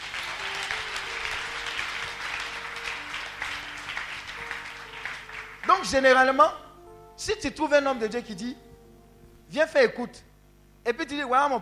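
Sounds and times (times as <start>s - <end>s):
church congregation clapping to praise God: 0.0s - 6.4s
speech: 5.7s - 6.6s, 7.2s - 8.6s, 9.5s - 11.6s.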